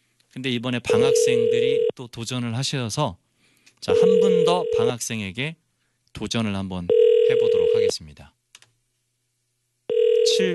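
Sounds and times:
speech: 0.4s - 8.4s, 10.2s - 10.5s
ringback tone of an unanswered telephone call: 4.0s - 4.9s, 6.9s - 7.9s, 9.9s - 10.5s.

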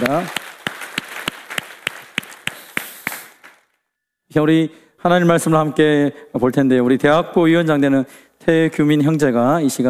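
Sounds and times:
speech: 0.0s - 0.4s, 4.4s - 9.8s
audience applause: 0.0s - 3.6s.

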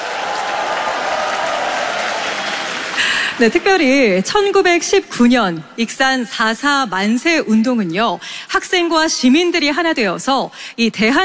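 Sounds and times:
audience applause: 0.0s - 3.8s
speech: 3.4s - 11.2s.

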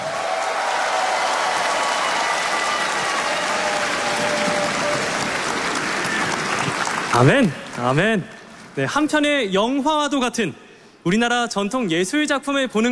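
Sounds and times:
large audience applauding: 0.0s - 8.0s
speech: 7.2s - 12.9s.

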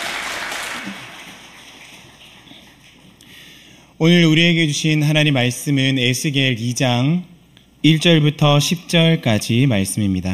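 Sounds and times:
audience applause: 0.0s - 3.1s
speech: 4.0s - 10.3s.

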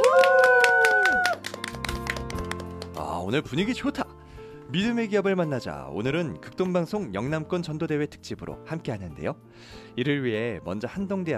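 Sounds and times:
rhythmic audience hand clapping at a Christian radio evangelism gathering: 0.0s - 3.1s
speech: 3.3s - 4.1s, 4.7s - 11.3s.

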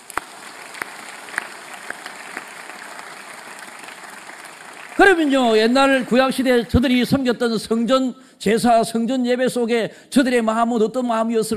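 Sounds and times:
audience applauding: 0.0s - 7.3s
speech: 5.0s - 11.5s.

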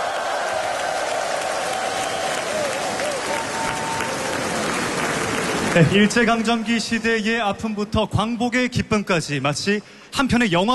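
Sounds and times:
audience applause after children's choir performance: 0.0s - 6.4s
speech: 5.8s - 10.7s.

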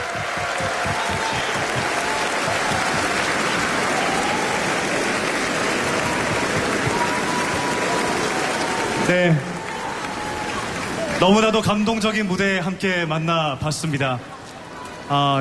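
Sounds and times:
standing ovation applause: 0.0s - 11.9s
speech: 9.1s - 9.5s, 11.2s - 14.3s, 15.1s - 15.3s.

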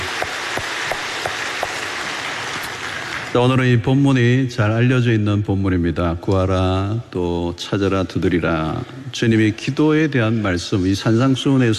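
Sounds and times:
crowd applauding: 0.0s - 3.8s
speech: 3.3s - 11.7s.

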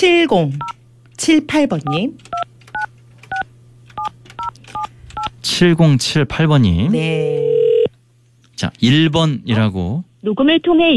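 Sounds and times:
speech: 0.0s - 2.4s, 5.4s - 7.5s, 8.6s - 10.9s
telephone touch-tone keypad beeps while placing a call: 1.9s - 3.4s.

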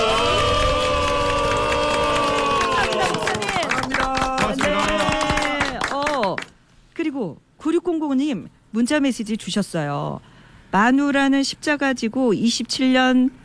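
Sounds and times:
applause of thanks in the studio: 0.0s - 6.6s
speech: 8.3s - 13.4s.

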